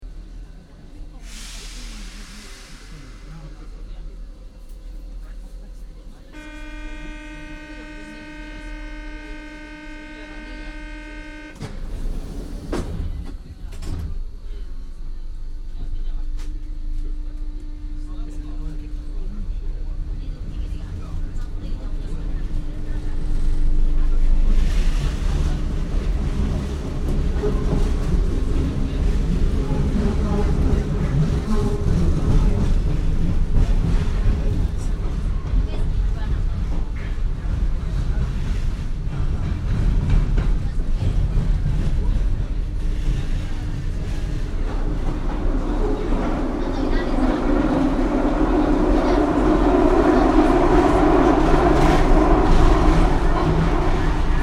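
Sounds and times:
Paris metro train moving: 0:00.0 - 0:54.4
commuter walla on the Paris metro: 0:00.2 - 0:54.4.

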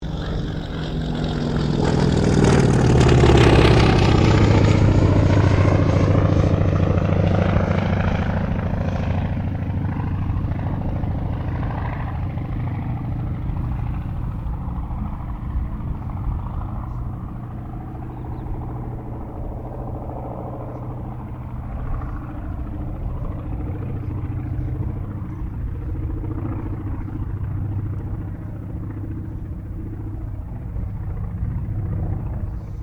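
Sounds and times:
CAC Wirraway aircraft passing: 0:00.0 - 0:32.8.

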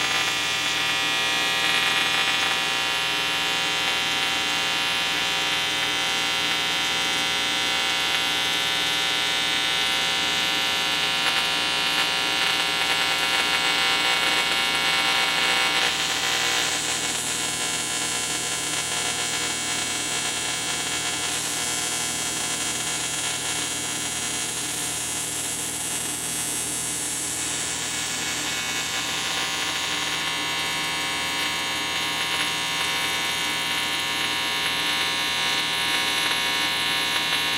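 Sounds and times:
TIG welder sparking: 0:00.0 - 0:37.5.

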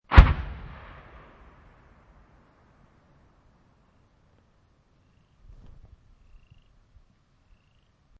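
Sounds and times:
distant mortar impact: 0:00.1 - 0:02.6.

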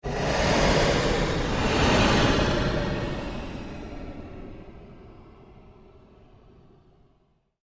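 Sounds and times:
long surge sweep: 0:00.0 - 0:05.2.

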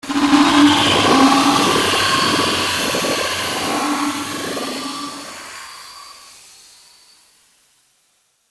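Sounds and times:
evil laboratory transition sound: 0:00.0 - 0:06.0.

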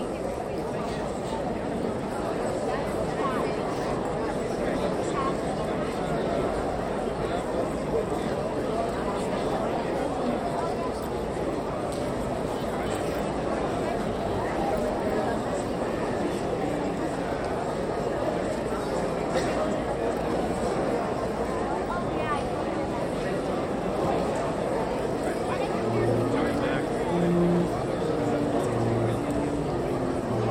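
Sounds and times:
high school graduation crowd chatter in an auditorium: 0:00.0 - 0:30.5
band playing in an auditorium: 0:25.8 - 0:30.5.

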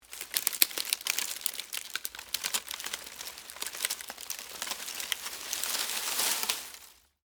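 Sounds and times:
palm frond foliage crunching with movement: 0:00.0 - 0:07.2.

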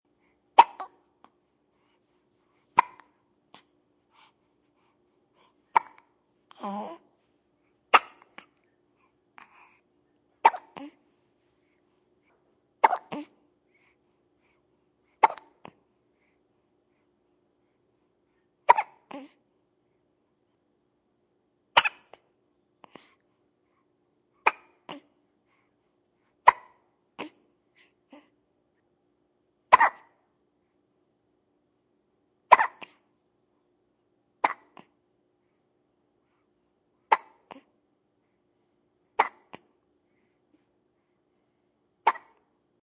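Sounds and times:
baby hiccuping: 0:00.6 - 0:01.0, 0:02.8 - 0:03.2, 0:05.7 - 0:07.0, 0:07.9 - 0:08.5, 0:10.4 - 0:11.0, 0:12.8 - 0:13.3, 0:15.2 - 0:15.8, 0:18.7 - 0:19.3, 0:21.8 - 0:22.2, 0:24.4 - 0:25.1, 0:26.5 - 0:27.4, 0:29.7 - 0:30.2, 0:32.5 - 0:33.0, 0:34.4 - 0:34.9, 0:37.1 - 0:37.6, 0:39.2 - 0:39.6, 0:42.1 - 0:42.5.

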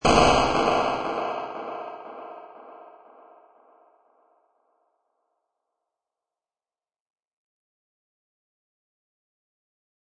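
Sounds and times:
low delayed crunchy crash hit: 0:00.0 - 0:03.2.

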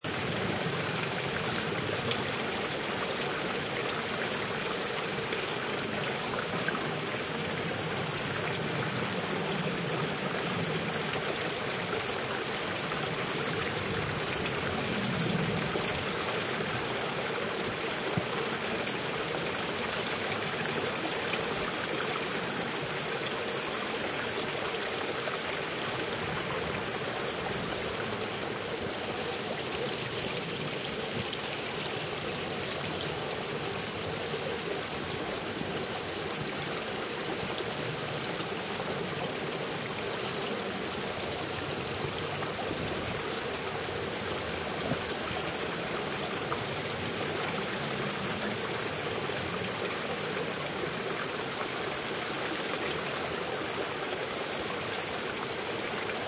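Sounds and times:
medium to fast flowing river: 0:00.0 - 0:56.2.

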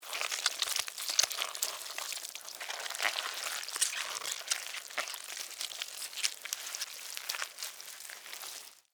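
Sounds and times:
slimy wet worm crawling: 0:00.0 - 0:08.9.

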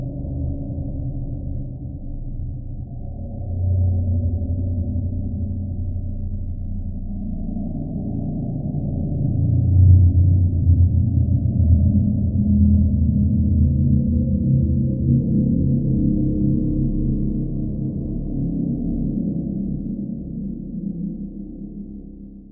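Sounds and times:
cold dark demonic horror cave drone: 0:00.0 - 0:22.5.

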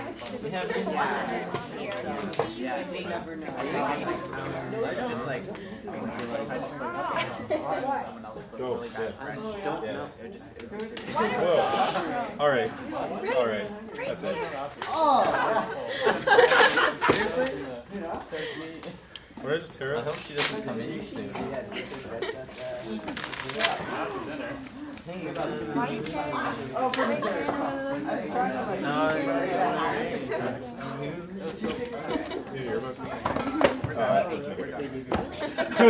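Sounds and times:
high school class crowd bantering: 0:00.0 - 0:35.8
laughter: 0:06.8 - 0:08.2, 0:11.0 - 0:12.4, 0:14.0 - 0:19.0, 0:21.1 - 0:23.2, 0:31.6 - 0:33.6, 0:35.2 - 0:35.8.

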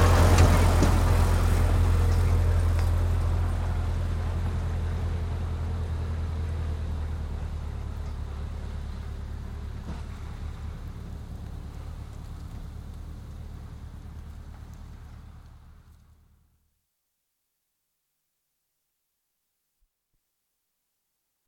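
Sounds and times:
Ford tractors with trailers approaching and passing outdoors: 0:00.0 - 0:16.5.

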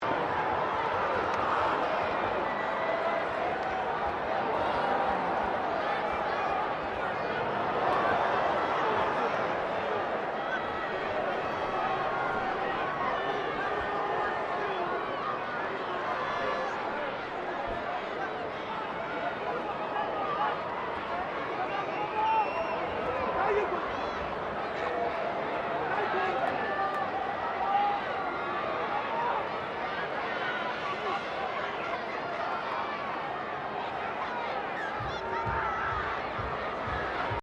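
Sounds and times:
crowd of 15K at a Rugby World Cup game: 0:00.0 - 0:37.4.

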